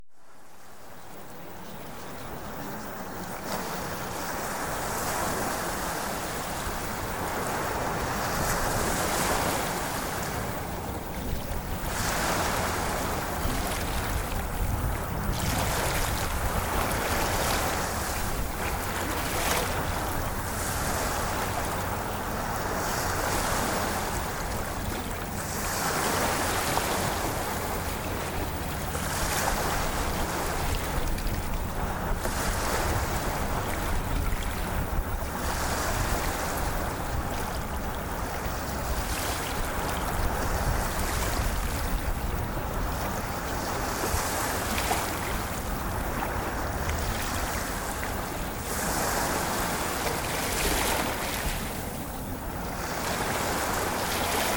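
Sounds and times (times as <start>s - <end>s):
ocean waves: 0.0s - 54.5s.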